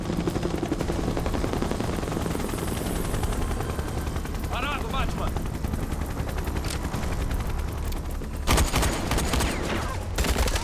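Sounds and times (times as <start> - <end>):
helicopter rotor chop: 0.0 - 10.6
rapid bursts of gunfire: 8.4 - 10.6.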